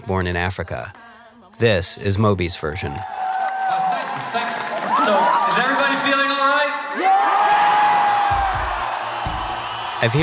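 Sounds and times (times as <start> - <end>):
speech: 0.1 - 1.0, 1.6 - 3.2, 5.0 - 7.4, 10.0 - 10.2
live concert audience cheering: 2.7 - 10.2.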